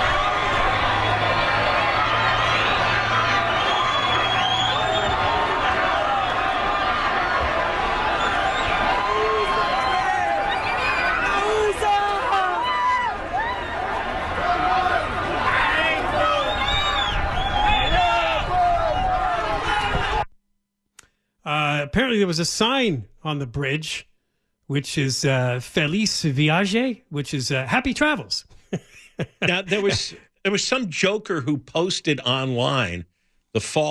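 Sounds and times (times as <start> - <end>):
large crowd rushing across a border bridge, shouting and clamoring: 0.0 - 20.3
speech: 22.2 - 24.1, 24.7 - 33.8
laughter: 28.5 - 30.6.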